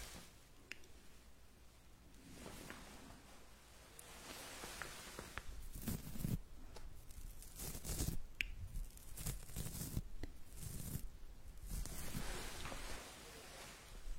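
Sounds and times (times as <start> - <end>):
ear massage rubbing and crinkling: 4.0 - 14.0.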